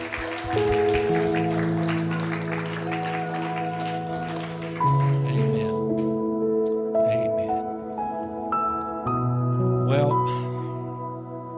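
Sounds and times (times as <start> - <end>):
audience clapping: 0.0 - 6.2
organ or keyboard chords: 0.0 - 11.5.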